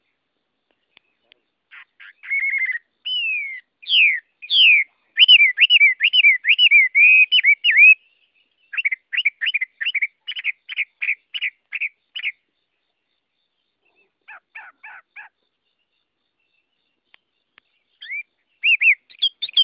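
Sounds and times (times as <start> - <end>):
Chinese hwamei singing whistles: 2.0 - 8.0, 8.7 - 12.4, 18.0 - 19.6.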